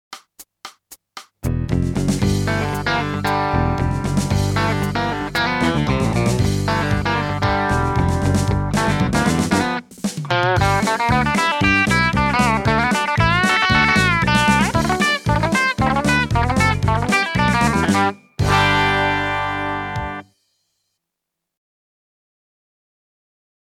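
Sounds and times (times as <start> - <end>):
country music: 1.4 - 20.3.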